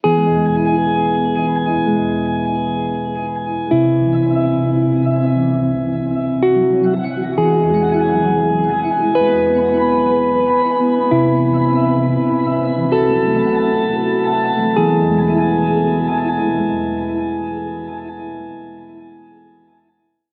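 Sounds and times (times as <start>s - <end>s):
guitar: 0.0s - 19.8s.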